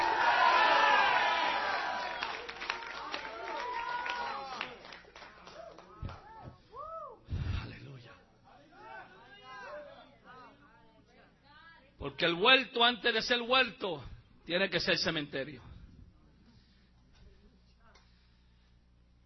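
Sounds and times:
audience shouting and cheering: 0.0 - 7.2
speech: 12.0 - 15.7.

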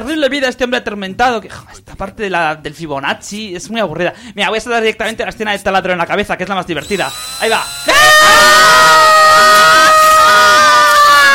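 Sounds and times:
speech: 0.0 - 9.0
person screaming in reaction to a film scene: 7.8 - 11.3.

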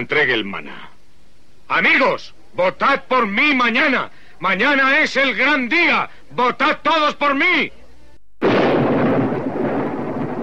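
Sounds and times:
speech: 0.0 - 0.9, 1.7 - 7.8
storm thunder crack and rumble: 8.4 - 10.4.

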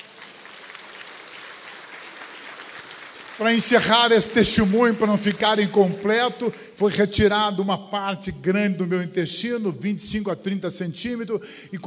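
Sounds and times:
applause from a church congregation: 0.0 - 7.6
speech: 3.4 - 11.8.

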